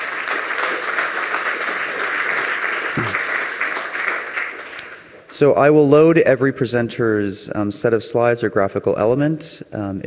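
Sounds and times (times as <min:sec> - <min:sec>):
audience applause for lightning talk presenters: 0:00.0 - 0:05.0
speech: 0:05.4 - 0:10.0.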